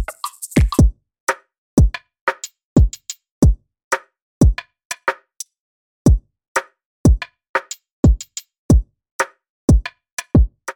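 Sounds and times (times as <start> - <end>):
drums: 0.0 - 0.9, 1.8 - 3.6, 4.4 - 5.2, 7.1 - 8.9, 9.7 - 10.7.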